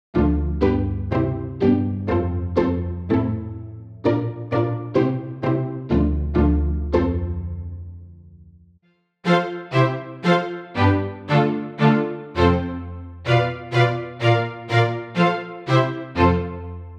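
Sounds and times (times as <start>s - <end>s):
violin-like sound: 0.2s - 7.8s, 9.2s - 16.9s.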